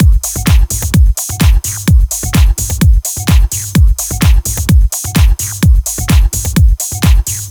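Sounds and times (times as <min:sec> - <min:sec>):
drum kit at 128 BPM: 0:00.0 - 0:07.4.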